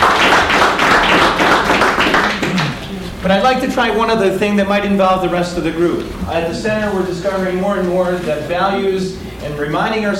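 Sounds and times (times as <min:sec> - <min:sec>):
audience applauding: 0:00.0 - 0:03.7
speech: 0:03.3 - 0:10.1.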